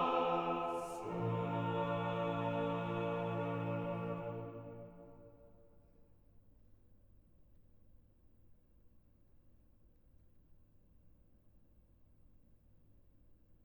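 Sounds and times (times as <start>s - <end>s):
organ chorale: 0.0s - 5.4s.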